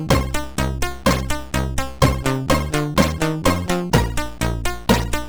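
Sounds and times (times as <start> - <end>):
MOS6581R4 SID sound chip synth tones: 0.1 - 0.5, 1.1 - 1.4, 2.0 - 4.3, 4.9 - 5.2.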